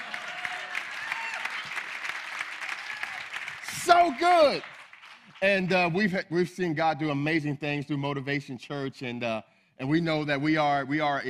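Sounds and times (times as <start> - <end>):
audience clapping: 0.0 - 6.1
speech: 3.8 - 4.7, 5.4 - 11.2.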